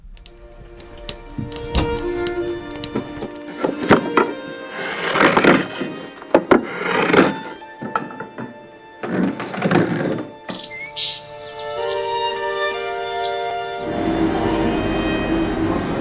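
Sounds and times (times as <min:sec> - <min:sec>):
wood being cut in rasping bursts: 0:00.1 - 0:15.9
birds singing softly: 0:10.4 - 0:13.9.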